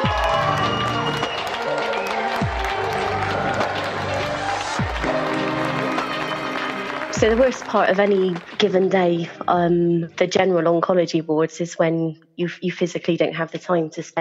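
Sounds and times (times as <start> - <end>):
applause and cheering: 0.0 - 9.3
speech: 7.2 - 14.2.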